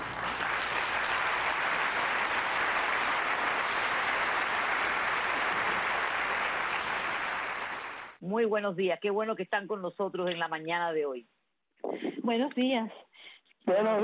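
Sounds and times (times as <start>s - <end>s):
audience applause: 0.0s - 8.2s
speech: 8.3s - 11.3s, 11.9s - 13.0s, 13.7s - 14.0s.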